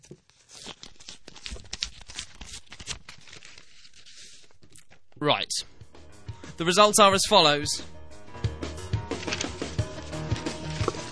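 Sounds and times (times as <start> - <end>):
speech: 0.0 - 0.3, 5.2 - 5.7, 6.6 - 7.9
envelope holding exam results being torn open: 0.0 - 5.1, 9.2 - 11.1.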